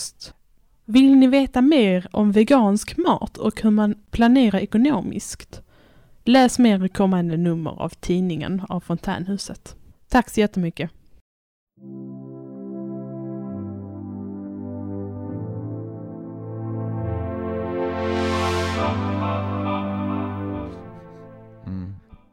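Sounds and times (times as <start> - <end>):
speech: 0.0 - 5.6, 6.3 - 11.0, 11.8 - 12.2
synth-pop song: 11.8 - 21.9.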